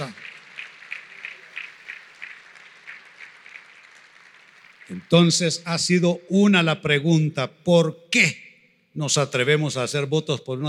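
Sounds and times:
audience clapping in rhythm: 0.0s - 6.2s
speech: 4.9s - 8.4s, 9.0s - 10.6s.

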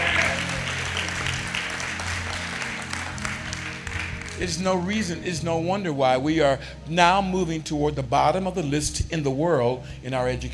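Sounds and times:
subdued crowd cheering and clapping: 0.0s - 4.4s
speech: 4.4s - 10.5s.

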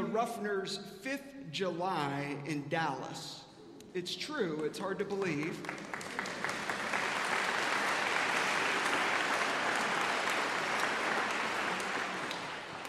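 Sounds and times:
speech: 0.1s - 6.3s
audience applauding: 5.2s - 12.8s.

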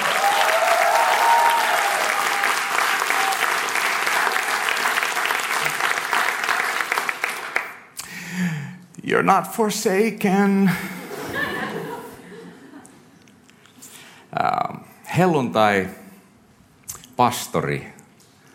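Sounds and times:
crowd clapping: 0.0s - 8.0s
speech: 9.2s - 11.0s, 15.2s - 16.0s, 17.2s - 18.0s
laughter: 10.8s - 13.2s.

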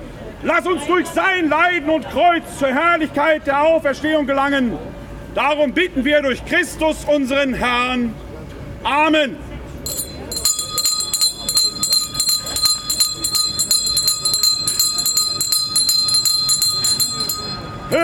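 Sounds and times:
speech: 0.4s - 8.2s, 8.8s - 10.0s
clock bells striking twelve noon: 9.9s - 18.0s.

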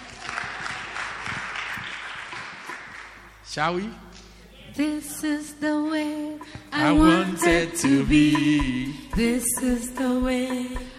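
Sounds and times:
group clapping: 0.0s - 3.4s
speech: 3.6s - 4.1s, 4.8s - 10.9s.

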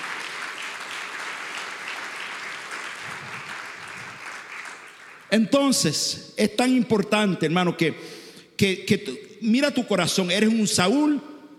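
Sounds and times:
audience applause: 0.0s - 5.3s
speech: 5.3s - 11.3s.

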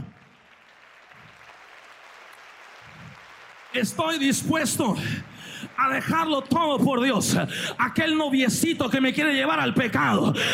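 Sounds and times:
audience applause: 0.0s - 7.6s
speech: 3.8s - 10.5s.

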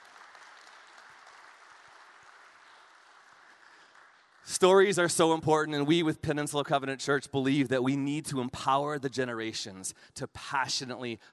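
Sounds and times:
audience applause: 0.0s - 4.8s
speech: 4.5s - 11.3s.

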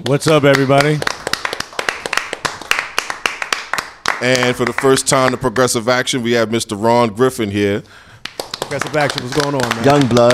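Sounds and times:
speech: 0.0s - 1.2s, 4.2s - 8.0s, 8.7s - 10.3s
hands clapping: 0.0s - 5.5s, 8.2s - 10.3s.

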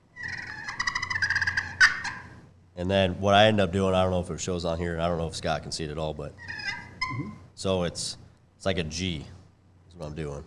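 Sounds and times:
turkey pot call purr ending in a cut: 0.2s - 2.3s, 6.4s - 7.5s
speech: 2.8s - 9.4s, 10.0s - 10.4s.

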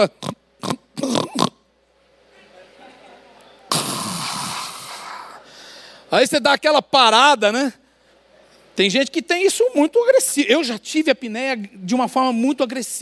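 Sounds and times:
speech: 0.0s - 0.4s, 6.1s - 7.8s, 8.8s - 13.0s
voice imitating snoring: 0.0s - 1.6s, 3.7s - 5.4s
breathy rushing noise: 3.7s - 6.0s.

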